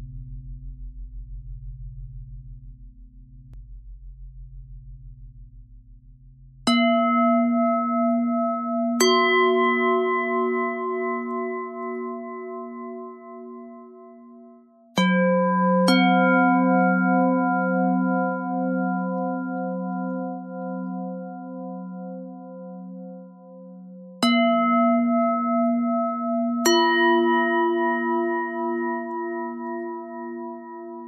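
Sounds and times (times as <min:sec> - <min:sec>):
bell: 0:06.7 - 0:31.0.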